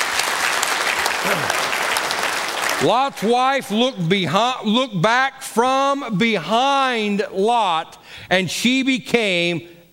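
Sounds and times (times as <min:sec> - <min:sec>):
audience round of applause: 0:00.0 - 0:02.9
speech: 0:01.2 - 0:01.6, 0:02.8 - 0:09.9.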